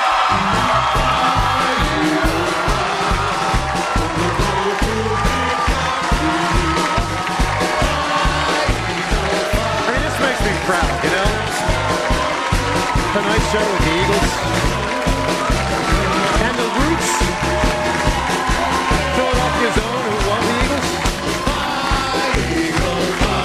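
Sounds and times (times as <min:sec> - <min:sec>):
late-night talk show studio audience cheering, whooping and applauding Philadelphia Eagles players: 0:00.0 - 0:23.4
speech: 0:00.3 - 0:01.4, 0:13.2 - 0:14.7.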